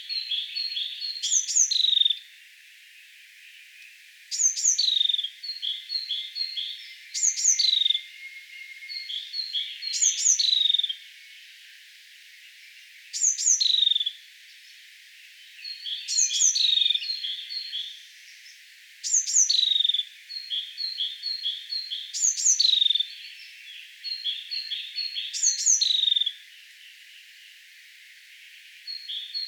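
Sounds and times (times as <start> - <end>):
bird whistles and chirps: 0.7 - 2.1, 4.3 - 11.0, 13.1 - 14.0, 15.7 - 17.9, 19.0 - 19.9, 22.2 - 23.0, 24.1 - 26.2.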